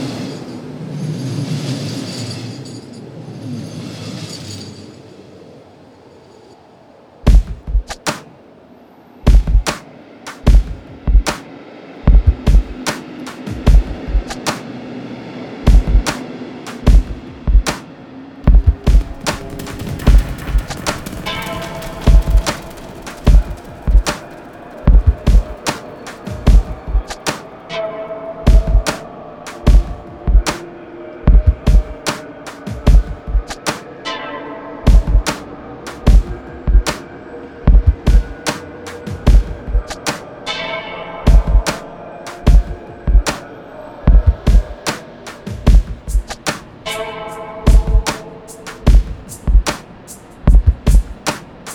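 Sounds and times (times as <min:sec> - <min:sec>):
dub music: 0:07.3 - 0:08.1, 0:09.3 - 0:09.8, 0:10.4 - 0:11.4, 0:12.1 - 0:14.6, 0:15.7 - 0:17.8, 0:18.4 - 0:27.4, 0:28.4 - 0:30.6, 0:31.3 - 0:33.8, 0:34.8 - 0:37.1, 0:37.6 - 0:40.2, 0:41.2 - 0:43.5, 0:44.0 - 0:51.7.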